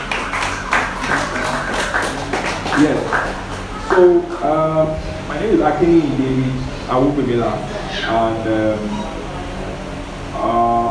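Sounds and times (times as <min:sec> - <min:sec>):
audience applause: 0:00.0 - 0:04.5
speech: 0:02.8 - 0:03.3, 0:04.0 - 0:09.1.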